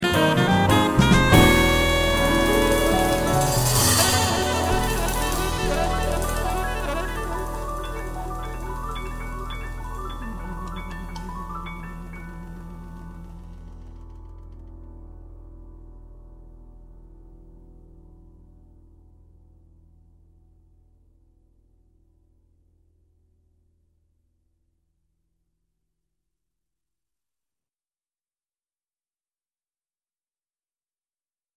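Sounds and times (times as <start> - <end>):
bass: 0.0 - 25.6.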